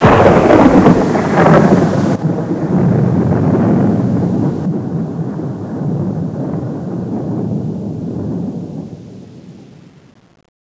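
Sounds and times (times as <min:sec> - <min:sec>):
thunder: 0:00.0 - 0:10.2.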